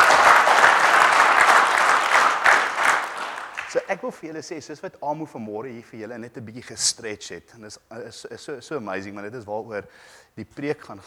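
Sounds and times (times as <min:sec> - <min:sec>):
audience clapping hands: 0:00.0 - 0:04.2
speech: 0:03.9 - 0:11.0.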